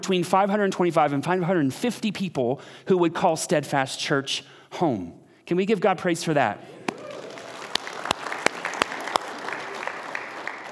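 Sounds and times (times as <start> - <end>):
speech: 0.0 - 6.8
polite golf-style applause: 6.8 - 10.6.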